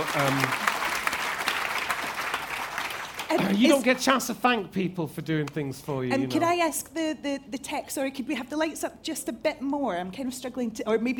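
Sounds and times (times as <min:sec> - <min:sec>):
audience at a prize event applauding: 0:00.0 - 0:04.0
speech: 0:00.1 - 0:00.7, 0:03.3 - 0:11.1.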